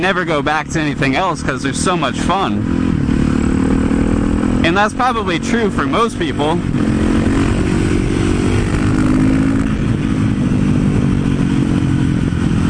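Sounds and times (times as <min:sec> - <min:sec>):
speech: 0:00.0 - 0:03.1, 0:04.6 - 0:06.9
supermoto motorcycle engine being ridden on the road: 0:00.0 - 0:12.6.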